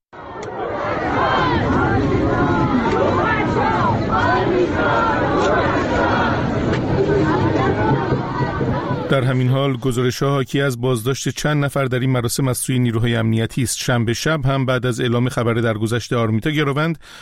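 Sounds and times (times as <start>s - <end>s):
funeral crowd shouting a name: 0.2s - 9.3s
speech: 8.1s - 17.1s.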